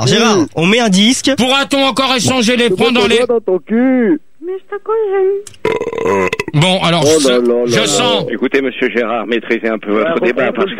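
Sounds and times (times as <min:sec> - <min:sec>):
speech: 0:00.0 - 0:10.7
man burping: 0:05.6 - 0:06.7.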